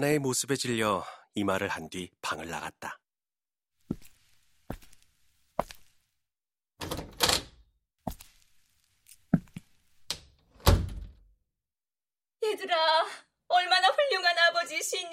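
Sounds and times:
speech: 0:00.0 - 0:03.0, 0:12.4 - 0:15.1
door being closed with thumps and knocks: 0:10.5 - 0:11.3.

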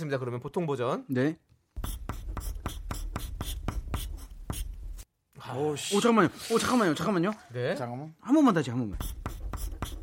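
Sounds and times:
speech: 0:00.0 - 0:01.5, 0:05.5 - 0:09.2
writing by hand: 0:01.8 - 0:05.0, 0:09.0 - 0:10.0.

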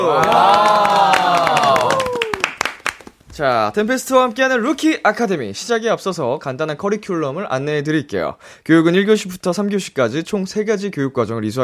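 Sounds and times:
speech: 0:00.0 - 0:00.5, 0:03.4 - 0:11.6
audience applause: 0:00.0 - 0:03.2.

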